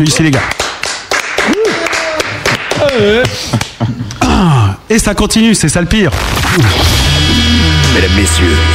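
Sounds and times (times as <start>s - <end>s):
speech: 0.0s - 0.6s, 2.8s - 8.7s
crowd applause: 0.1s - 3.4s
people shouting and whooping: 1.4s - 3.3s.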